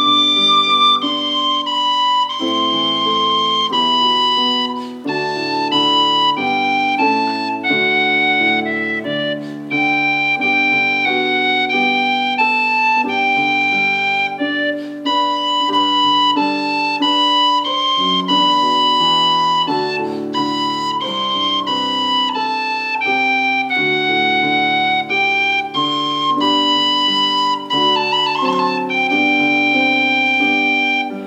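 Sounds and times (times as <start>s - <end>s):
piano piece: 0.0s - 31.2s.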